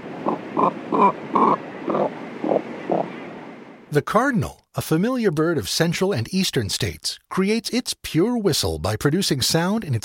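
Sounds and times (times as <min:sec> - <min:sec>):
cormorant call: 0:00.2 - 0:03.2
speech: 0:00.6 - 0:02.0, 0:03.9 - 0:10.0.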